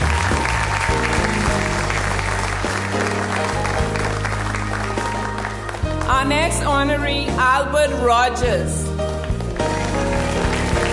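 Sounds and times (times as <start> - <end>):
church congregation clapping for an honoree at a service honouring fathers: 0.0 - 6.2, 9.1 - 10.9
speech: 6.2 - 8.9.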